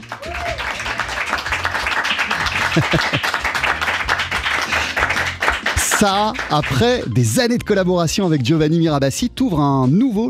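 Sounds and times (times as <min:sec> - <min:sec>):
sustained audience applause: 0:00.0 - 0:07.0
laughter: 0:00.7 - 0:05.4
speech: 0:02.8 - 0:03.4, 0:06.0 - 0:10.2.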